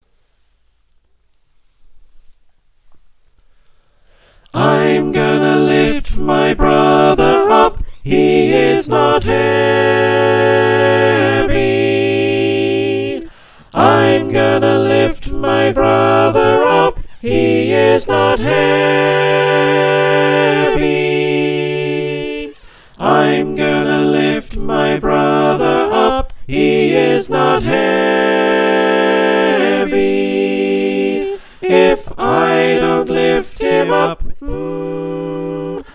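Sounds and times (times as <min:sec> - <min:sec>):
soprano alto tenor bass choir singing: 0:04.5 - 0:35.9.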